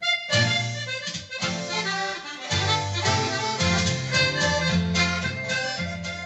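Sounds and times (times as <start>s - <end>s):
accordion from a large private collection playing chords: 0.0s - 6.2s.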